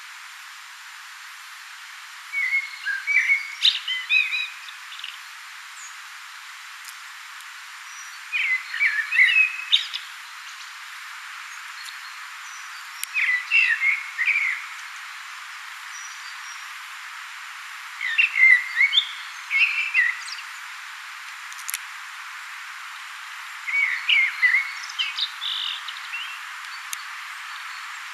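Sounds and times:
steady background hiss: 0:00.0 - 0:28.1
common blackbird song: 0:02.3 - 0:06.0, 0:07.8 - 0:10.8, 0:11.5 - 0:14.8, 0:15.9 - 0:16.7, 0:18.0 - 0:20.7, 0:23.6 - 0:28.1.

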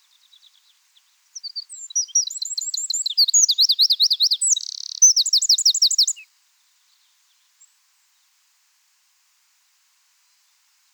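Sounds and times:
Eurasian wren singing: 0:01.4 - 0:06.2.

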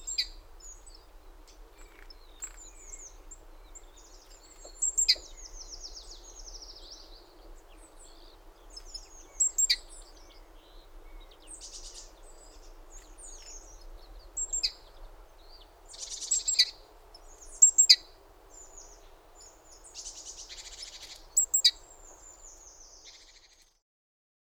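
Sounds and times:
great tit calls: 0:00.0 - 0:13.8, 0:14.4 - 0:23.7
several birds whistling and chirping: 0:01.8 - 0:07.2, 0:07.8 - 0:13.8, 0:15.5 - 0:19.0, 0:19.9 - 0:23.6.

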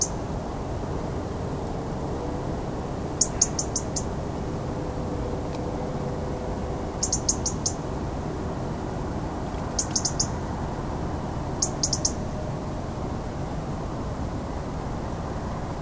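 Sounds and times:
European robin ticking calls: 0:00.0 - 0:00.3, 0:03.2 - 0:04.2, 0:06.9 - 0:07.9, 0:09.6 - 0:10.5, 0:11.6 - 0:12.3
low noise: 0:00.0 - 0:15.8.

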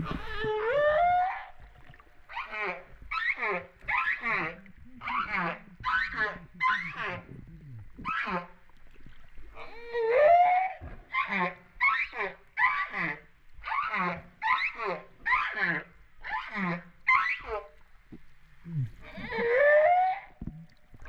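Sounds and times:
humpback whale wailing: 0:00.0 - 0:07.4, 0:09.6 - 0:17.8, 0:18.7 - 0:21.0.

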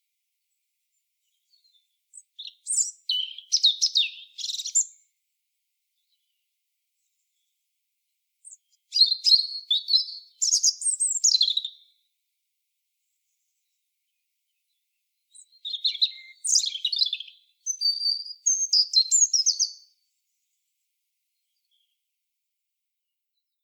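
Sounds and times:
European robin song: 0:01.2 - 0:05.2, 0:08.4 - 0:12.1, 0:14.1 - 0:20.0.

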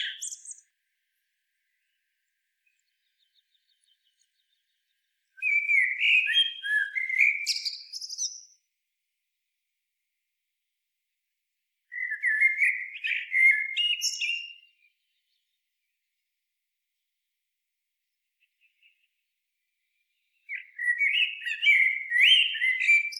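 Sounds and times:
Eurasian blackbird singing: 0:00.0 - 0:00.7, 0:02.7 - 0:08.7, 0:11.9 - 0:15.5, 0:20.2 - 0:23.1.

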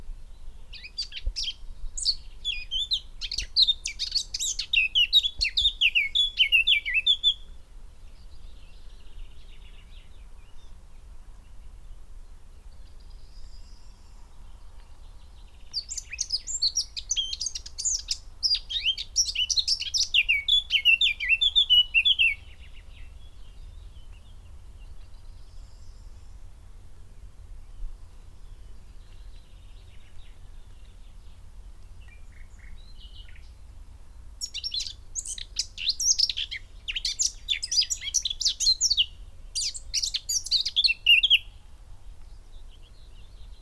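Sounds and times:
Eurasian blackcap song: 0:00.6 - 0:10.7, 0:14.8 - 0:26.4, 0:27.7 - 0:33.6, 0:34.4 - 0:41.6.

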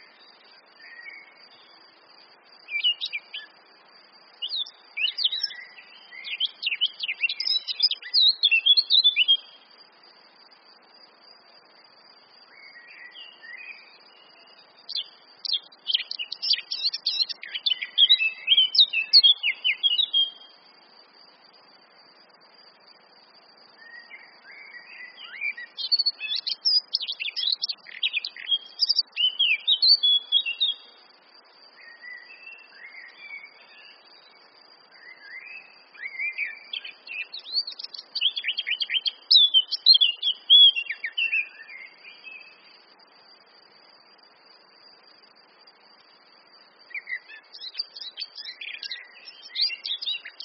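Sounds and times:
Eurasian blackcap song: 0:00.0 - 0:01.8, 0:02.6 - 0:03.6, 0:04.3 - 0:09.8, 0:12.4 - 0:20.6, 0:23.8 - 0:31.0, 0:31.7 - 0:42.8, 0:46.8 - 0:50.4.

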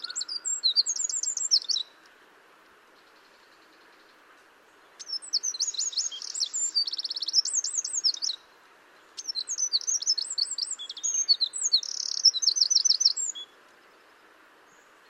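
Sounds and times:
Eurasian wren song: 0:00.0 - 0:15.0.

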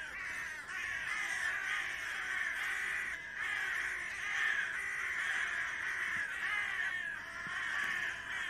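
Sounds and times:
carrion crow cawing: 0:00.0 - 0:08.4.

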